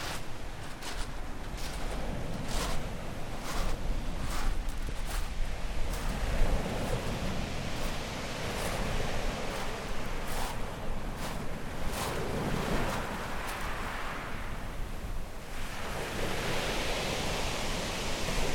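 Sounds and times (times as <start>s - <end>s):
beach ambience in Brighton UK: 0.0s - 18.5s.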